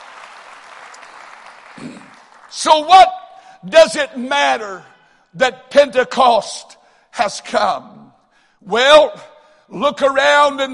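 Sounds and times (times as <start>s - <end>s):
audience clapping: 0.0s - 3.0s
speech: 1.8s - 8.0s, 8.6s - 10.7s.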